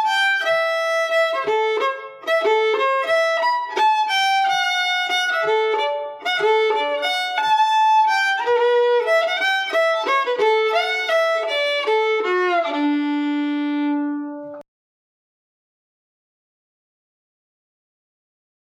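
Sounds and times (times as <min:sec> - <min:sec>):
fiddles playing a swing waltz: 0:00.0 - 0:14.6.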